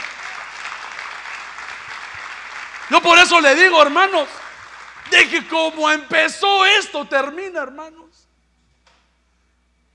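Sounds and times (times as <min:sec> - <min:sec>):
audience applauding: 0:00.0 - 0:06.0
speech: 0:02.9 - 0:04.4, 0:05.1 - 0:08.3.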